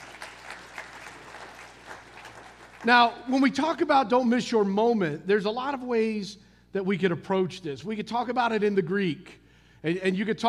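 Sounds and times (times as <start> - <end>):
audience clapping: 0.0 - 3.2
speech: 2.8 - 10.4.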